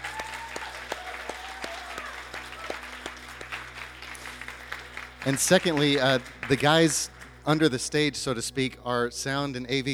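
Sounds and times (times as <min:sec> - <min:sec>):
audience applause: 0:00.0 - 0:07.4
speech: 0:05.2 - 0:09.9.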